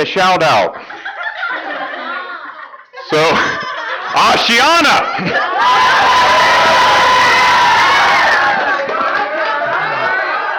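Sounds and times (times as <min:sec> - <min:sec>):
speech: 0:00.0 - 0:00.9, 0:03.1 - 0:07.0
laughter: 0:00.7 - 0:10.5
church congregation cheering and shouting: 0:03.1 - 0:10.5.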